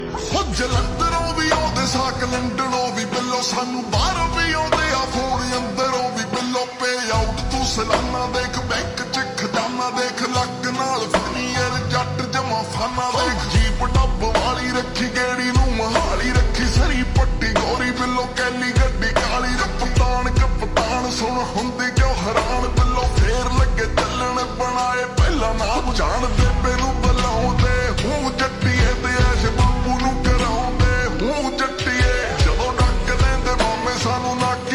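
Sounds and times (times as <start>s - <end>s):
slowed reverb music: 0.0s - 34.7s.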